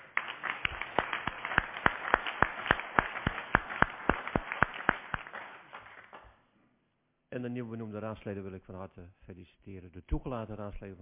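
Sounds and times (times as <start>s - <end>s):
council applause: 0.0s - 6.4s
speech: 7.4s - 11.0s.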